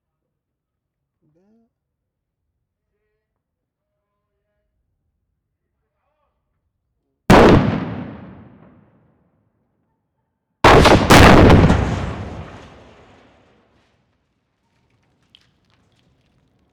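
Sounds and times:
rocket car explosion: 0:07.3 - 0:08.7, 0:10.7 - 0:13.3.

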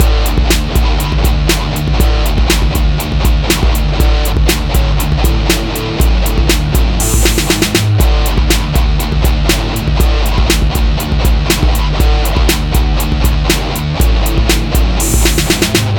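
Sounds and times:
trashy music loop: 0:00.0 - 0:15.9.

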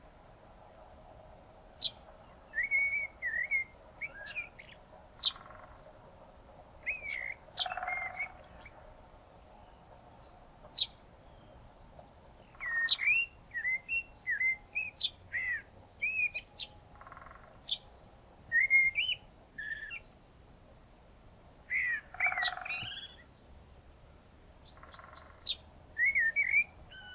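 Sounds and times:
birds on a spring morning: 0:00.6 - 0:27.1
woodpecker on a spring morning: 0:02.6 - 0:06.0, 0:06.8 - 0:08.7, 0:12.0 - 0:17.8, 0:21.7 - 0:23.3, 0:24.7 - 0:27.1.

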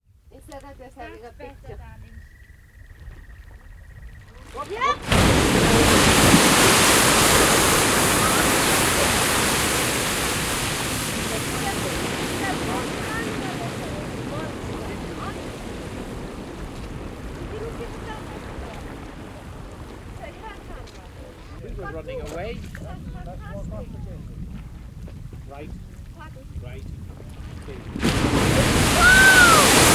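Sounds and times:
tourists reacting and talking: 0:00.3 - 0:02.3, 0:04.3 - 0:06.0, 0:08.2 - 0:09.5, 0:11.2 - 0:15.7, 0:17.4 - 0:19.2, 0:20.2 - 0:24.2
geyser erupting in Iceland: 0:04.5 - 0:21.6, 0:27.0 - 0:29.9.

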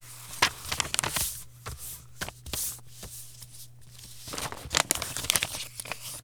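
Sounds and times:
letter folding: 0:00.0 - 0:06.2.

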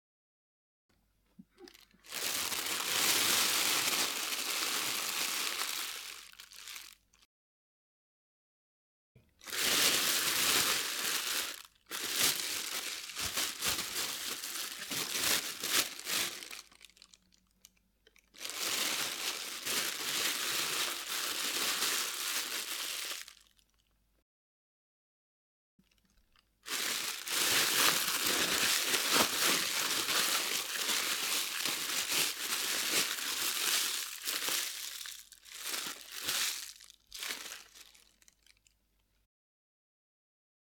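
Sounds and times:
plastic bag crunching: 0:01.6 - 0:07.0, 0:09.4 - 0:17.4, 0:18.1 - 0:23.6, 0:26.6 - 0:38.7.

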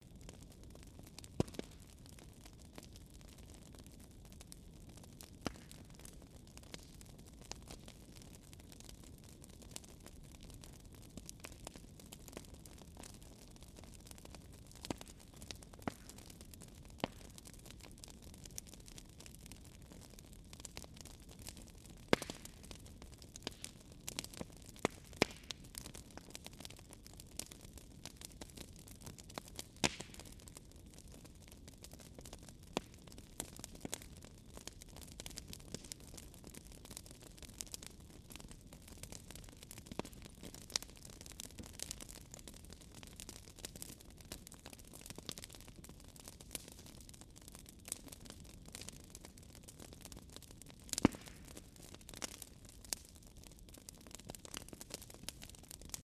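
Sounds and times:
bonfire flames sizzling: 0:00.0 - 0:56.0.

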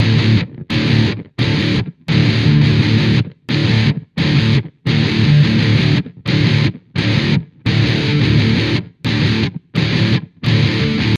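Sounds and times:
metal guitar phrase: 0:00.0 - 0:11.1.

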